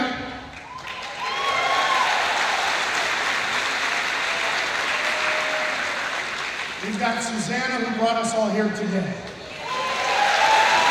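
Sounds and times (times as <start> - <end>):
audience applause: 0.5 - 7.4, 9.4 - 10.8
speech: 7.1 - 9.2.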